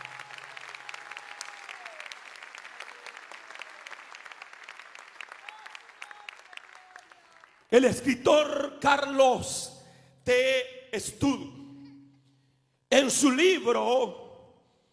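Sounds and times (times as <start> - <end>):
audience applause: 0.0 - 7.7
speech: 7.7 - 11.6, 13.1 - 14.2.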